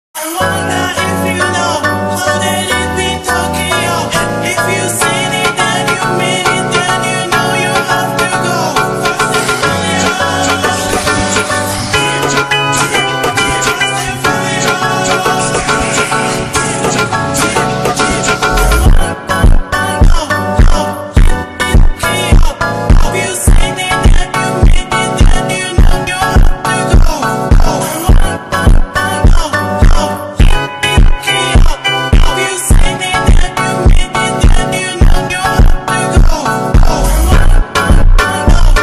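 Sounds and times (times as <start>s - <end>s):
slowed Brazilian funk remix: 0.3s - 38.8s.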